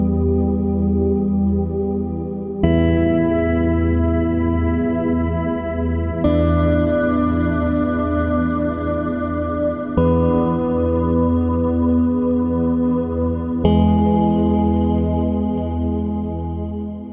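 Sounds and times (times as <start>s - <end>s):
ambient soundscape: 0.0s - 17.1s.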